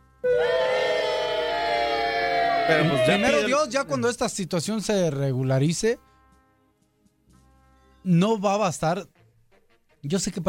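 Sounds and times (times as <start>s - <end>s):
crowd booing: 0.2s - 4.0s
speech: 2.7s - 6.1s, 8.0s - 9.2s, 10.0s - 10.4s.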